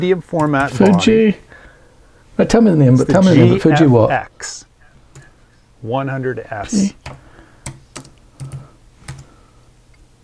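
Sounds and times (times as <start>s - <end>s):
speech: 0.0s - 1.5s, 2.4s - 4.7s, 5.8s - 7.2s
faint hum: 0.0s - 10.2s
computer keyboard typing: 0.4s - 1.1s, 7.0s - 9.3s.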